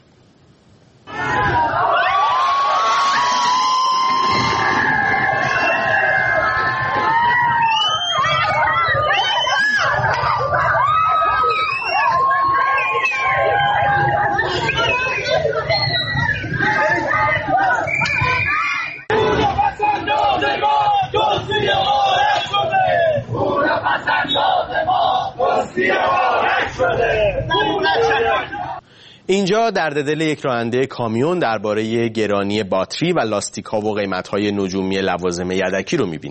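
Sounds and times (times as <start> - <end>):
protest crowd shouting: 1.0 - 28.8
speech: 29.3 - 36.2.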